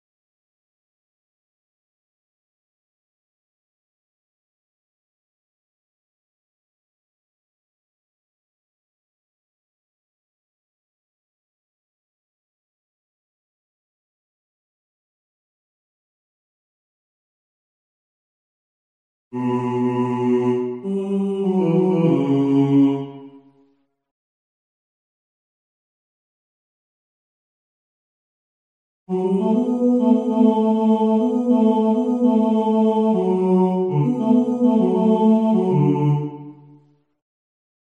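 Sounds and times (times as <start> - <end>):
person singing: 19.4 - 23.4, 29.1 - 36.7.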